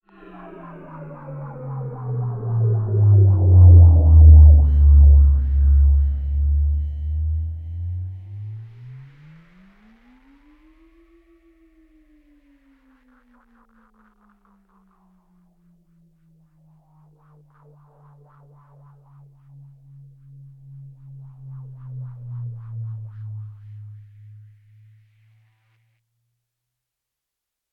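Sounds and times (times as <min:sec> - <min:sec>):
spaceship moving: 0:00.1 - 0:09.4.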